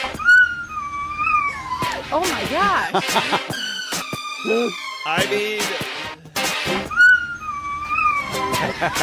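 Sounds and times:
dog howling along to a pop song: 0.1s - 2.1s, 6.9s - 8.6s
speech: 2.1s - 3.6s, 4.4s - 5.9s, 8.6s - 9.0s
laughter: 2.7s - 3.8s, 8.4s - 9.0s.

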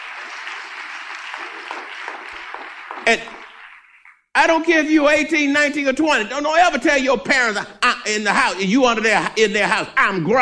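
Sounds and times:
crowd clapping: 0.0s - 4.7s
speech: 1.9s - 3.5s, 4.4s - 10.4s.

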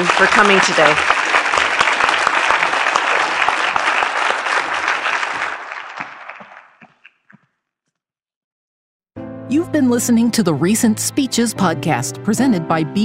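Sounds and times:
speech: 0.0s - 1.3s, 9.5s - 13.0s
audience applause: 0.0s - 7.3s.

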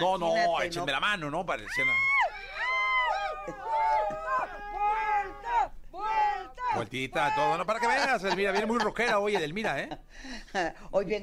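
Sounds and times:
speech: 0.0s - 2.1s, 6.8s - 11.2s
coworkers shouting and cheering: 1.7s - 8.1s
laughter: 3.2s - 5.1s, 7.2s - 10.7s.

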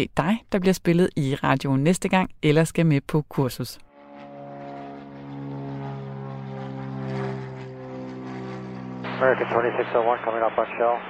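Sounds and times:
speech: 0.0s - 3.9s, 9.2s - 11.0s
propeller airplane droning overhead: 3.9s - 11.0s.

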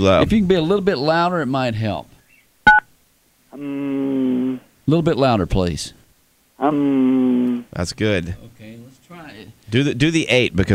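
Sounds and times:
speech: 0.0s - 2.1s, 3.6s - 4.2s, 4.9s - 6.0s, 6.6s - 8.8s, 9.7s - 10.7s
telephone keypad two-tone beep: 2.7s - 2.9s.

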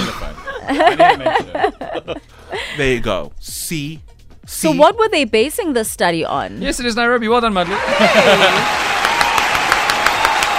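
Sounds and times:
laughter: 0.0s - 2.7s, 7.6s - 8.9s
speech: 0.7s - 8.9s
one person clapping hands: 7.6s - 10.5s.

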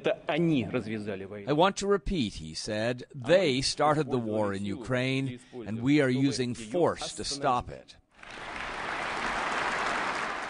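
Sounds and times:
speech: 0.0s - 8.5s
audience applause after speech: 8.2s - 10.4s.

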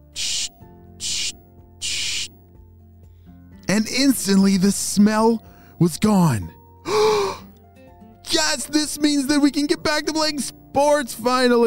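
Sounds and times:
spray bottle of Bubbleberry soap hissing: 0.0s - 2.4s
speech: 3.8s - 7.1s, 8.6s - 11.6s.

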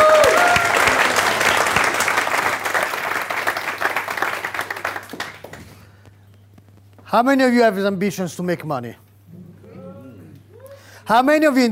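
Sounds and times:
massive round of audience applause: 0.0s - 5.8s
speech: 7.1s - 9.0s, 11.1s - 11.7s.

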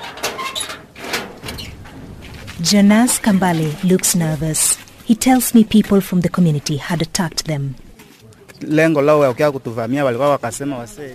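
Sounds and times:
gate being opened: 0.0s - 5.0s
speech: 2.6s - 7.9s, 8.6s - 11.1s.

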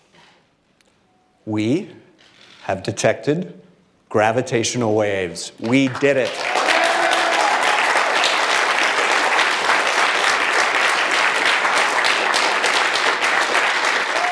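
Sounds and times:
speech: 1.5s - 2.0s, 2.6s - 6.5s
applause at a press conference: 5.6s - 14.3s.

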